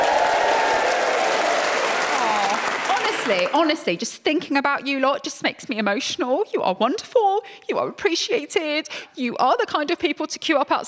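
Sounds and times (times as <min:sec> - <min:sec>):
studio audience at a free radio recording applauding: 0:00.0 - 0:03.9
speech: 0:03.3 - 0:10.8.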